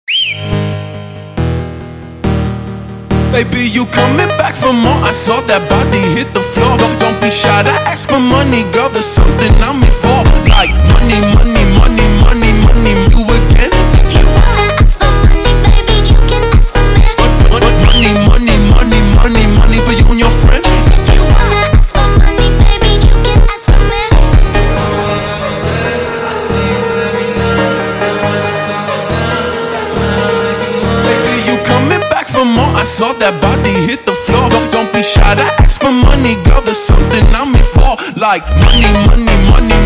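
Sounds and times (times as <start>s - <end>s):
sped up montagem music: 0.1s - 39.8s.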